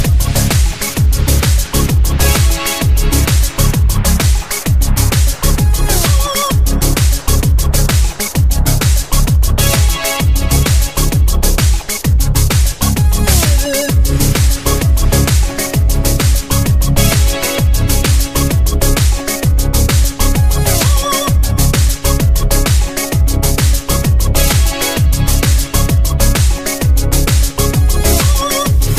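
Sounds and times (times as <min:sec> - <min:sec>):
flute beat: 0:00.0 - 0:28.9.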